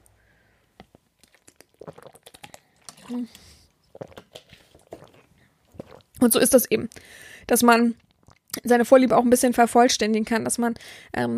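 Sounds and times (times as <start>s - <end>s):
person sipping a drink: 0.8s - 6.2s
speech: 3.1s - 3.6s, 6.2s - 8.0s, 8.6s - 11.3s.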